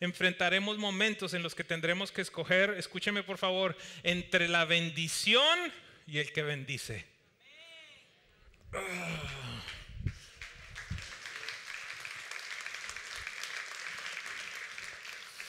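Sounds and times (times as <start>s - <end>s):
speech: 0.0s - 7.1s, 8.7s - 9.8s
audience applause: 9.2s - 15.4s.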